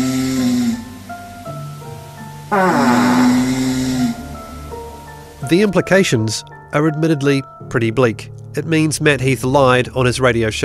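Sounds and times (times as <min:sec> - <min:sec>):
person snoring at a lodge: 0:00.0 - 0:01.0, 0:02.5 - 0:04.5
speech: 0:02.5 - 0:02.9, 0:05.5 - 0:10.6.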